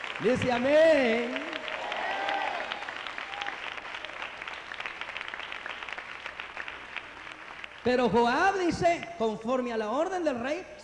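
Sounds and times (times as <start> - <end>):
crowd applauding: 0.0 - 8.0
speech: 0.2 - 1.5, 7.8 - 10.8.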